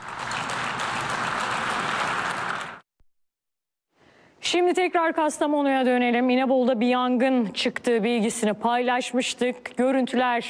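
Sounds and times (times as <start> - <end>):
audience applause for a speech: 0.0 - 2.8
speech: 4.4 - 10.4.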